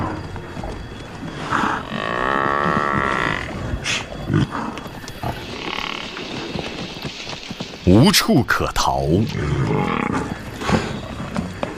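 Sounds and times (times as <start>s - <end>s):
lions roaring: 0.0s - 6.5s, 9.2s - 11.7s
speech: 7.9s - 10.4s.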